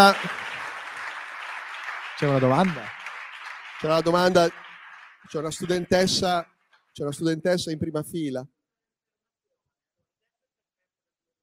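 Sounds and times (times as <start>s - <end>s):
speech: 0.0s - 0.4s, 2.2s - 3.0s, 3.8s - 4.6s, 5.2s - 8.6s
audience applause: 0.0s - 7.6s.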